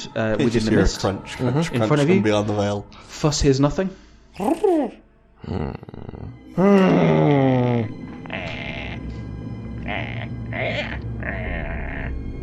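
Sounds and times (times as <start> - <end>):
speech: 0.0 - 8.6
voice imitating a velociraptor: 4.4 - 9.1, 9.8 - 12.2.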